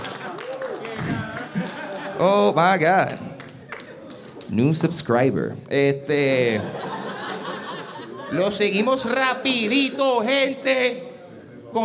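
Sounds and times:
applause: 0:00.0 - 0:02.2, 0:03.0 - 0:04.6
laughter: 0:00.0 - 0:04.4, 0:06.2 - 0:10.2
speech: 0:02.2 - 0:03.2, 0:04.5 - 0:06.9, 0:08.3 - 0:11.1.

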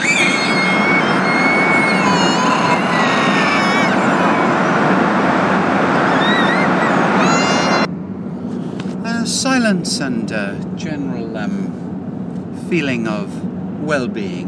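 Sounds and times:
high whining tones: 0:00.0 - 0:08.0
car driving through a tunnel with windows open: 0:00.0 - 0:14.4
speech: 0:09.7 - 0:11.6, 0:12.7 - 0:14.4.

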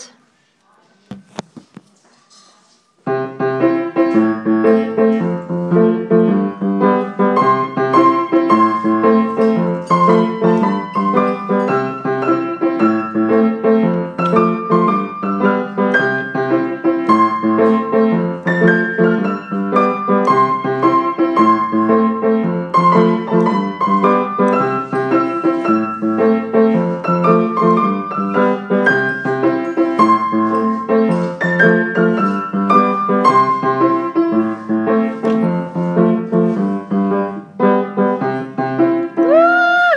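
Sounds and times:
person playing piano: 0:03.1 - 0:39.8.

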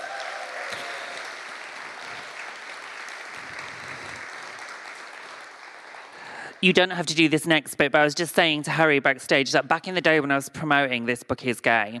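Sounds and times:
audience applause: 0:00.0 - 0:06.8
speech: 0:06.6 - 0:11.9.

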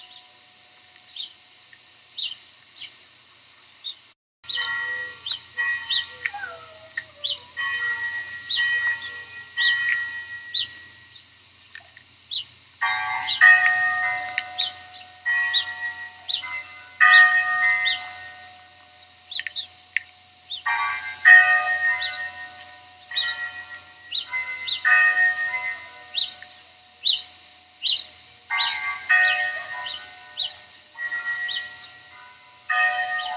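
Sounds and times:
church bells in the Pyrenees: 0:00.0 - 0:01.2, 0:04.5 - 0:11.3, 0:12.8 - 0:33.3
birdsong in the Pyrenees: 0:00.0 - 0:01.5, 0:02.1 - 0:33.3
dog howling in the Pyrenees: 0:05.9 - 0:07.7.

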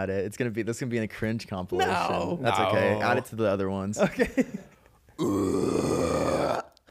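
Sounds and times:
speech: 0:00.0 - 0:04.7
person screaming low: 0:05.2 - 0:06.7.

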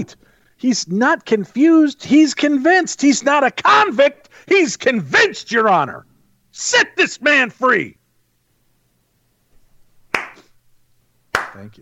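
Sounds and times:
speech: 0:00.0 - 0:08.0, 0:11.6 - 0:11.8
low steady hum: 0:00.0 - 0:11.8
sharp loud hand clap: 0:10.1 - 0:10.6, 0:11.3 - 0:11.7.

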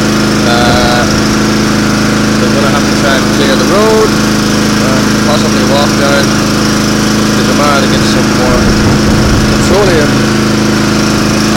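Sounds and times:
generator running to keep a house warm: 0:00.0 - 0:11.5.

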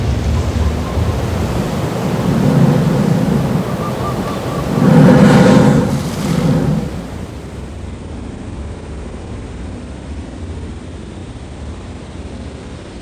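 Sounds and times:
sliding waves: 0:00.0 - 0:07.7.

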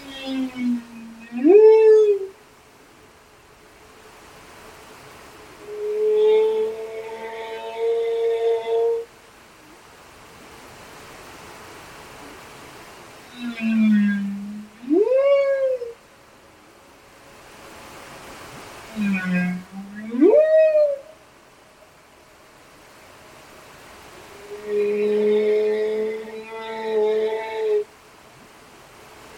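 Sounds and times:
humpback whales singing off Westman Islands: 0:00.0 - 0:02.4, 0:05.6 - 0:09.8, 0:13.2 - 0:16.8, 0:18.8 - 0:21.3, 0:24.0 - 0:27.9.

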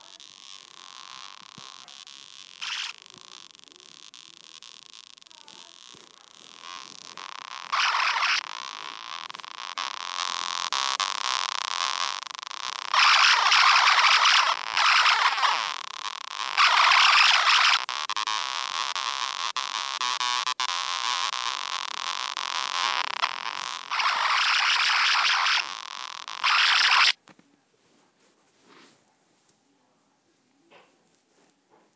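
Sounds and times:
circuit bent toy leopard sounds: 0:00.0 - 0:27.2.

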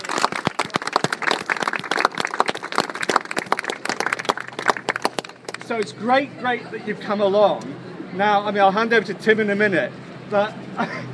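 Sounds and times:
crowd applause: 0:00.0 - 0:05.9
speech: 0:05.7 - 0:11.1.

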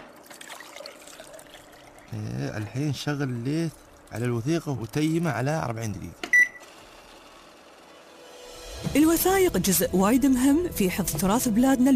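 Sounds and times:
water trickling into powder at a document restoration table: 0:00.0 - 0:05.2
speech: 0:02.1 - 0:06.2, 0:08.9 - 0:11.9.

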